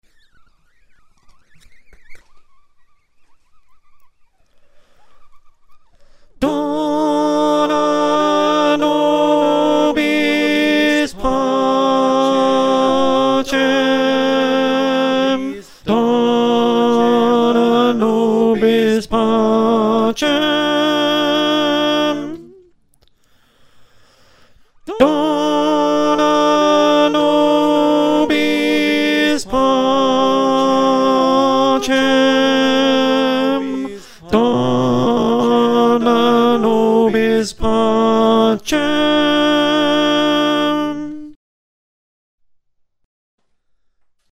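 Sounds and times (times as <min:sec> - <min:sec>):
alto choir singing: 0:06.4 - 0:22.6, 0:24.9 - 0:41.0.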